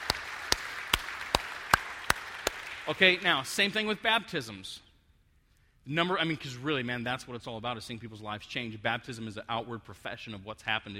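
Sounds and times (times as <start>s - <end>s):
hand claps during a church service: 0.0s - 3.2s
speech: 2.9s - 4.9s, 5.8s - 10.9s.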